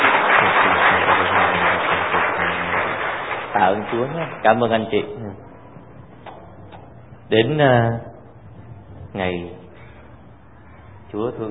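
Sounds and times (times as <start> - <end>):
crowd applause: 0.0 - 4.9
speech: 3.6 - 5.5, 7.3 - 8.1, 9.1 - 9.6, 11.1 - 11.4.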